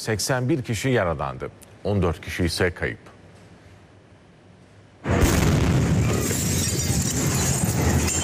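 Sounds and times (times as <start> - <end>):
speech: 0.0 - 3.1
explosion at military barracks depot storing flammable materials: 5.0 - 8.2.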